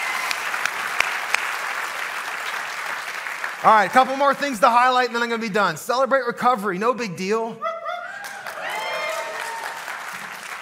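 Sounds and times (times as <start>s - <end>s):
audience applause in a church service: 0.0s - 5.3s, 8.2s - 10.6s
speech: 3.6s - 7.7s.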